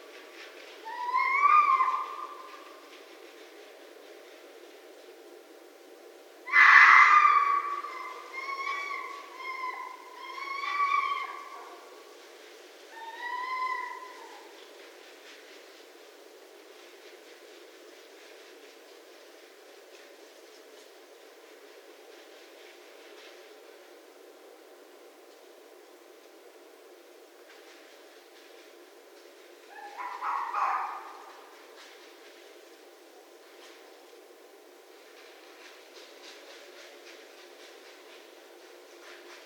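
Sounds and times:
red fox calling: 0.8 - 2.8, 6.4 - 11.9, 12.9 - 14.6, 29.6 - 31.6.

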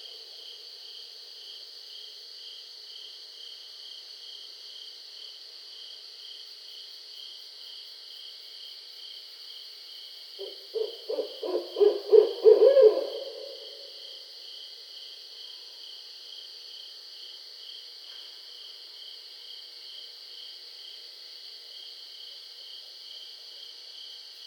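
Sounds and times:
Barred Owl calling: 10.4 - 14.1.

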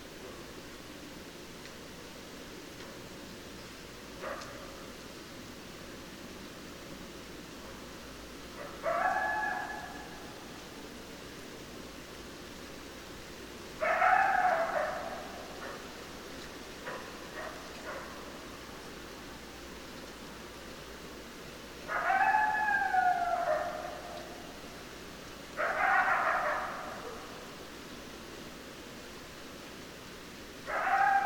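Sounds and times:
background hiss: 0.0 - 31.2
coyote howling: 8.6 - 10.3, 13.8 - 15.6, 21.9 - 24.5, 25.6 - 27.4, 30.7 - 31.2.

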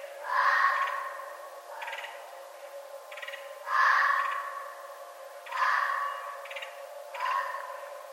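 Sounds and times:
red fox screaming: 0.2 - 2.0, 3.6 - 4.9, 5.5 - 6.4, 7.2 - 7.9.

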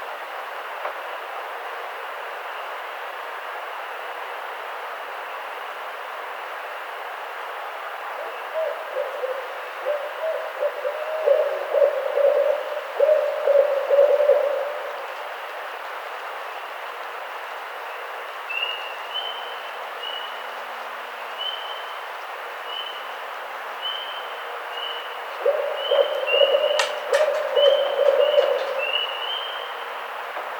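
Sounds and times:
barred owl hooting: 8.0 - 15.4, 23.8 - 30.1.

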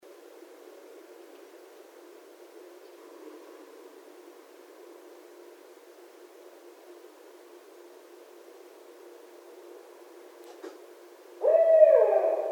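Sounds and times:
barred owl hooting: 11.4 - 12.5.

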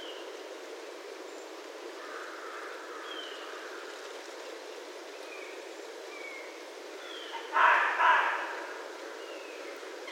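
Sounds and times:
low even hiss: 0.0 - 10.1
red fox barking: 7.4 - 8.8.

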